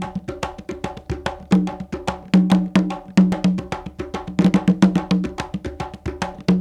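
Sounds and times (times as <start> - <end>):
bembe world dance rhythm in six-eight: 0.0 - 6.5.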